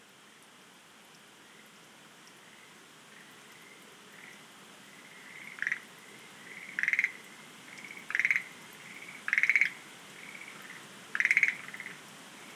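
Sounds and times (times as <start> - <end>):
Schlegel's green tree frog pulsed rattling croaks: 5.0 - 12.0.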